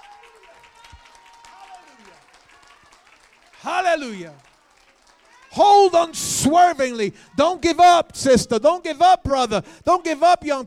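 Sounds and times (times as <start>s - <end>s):
audience clapping: 0.0s - 7.1s
speech: 3.6s - 4.5s, 5.5s - 10.6s.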